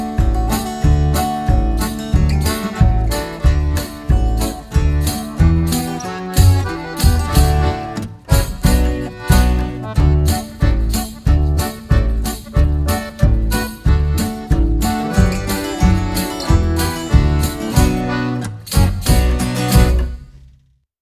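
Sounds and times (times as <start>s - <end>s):
wind instrument: 0.0s - 20.0s.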